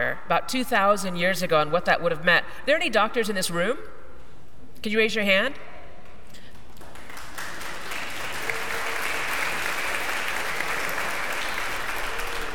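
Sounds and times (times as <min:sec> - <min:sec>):
speech: 0:00.1 - 0:04.0, 0:04.8 - 0:05.7
audience applause: 0:06.5 - 0:12.5.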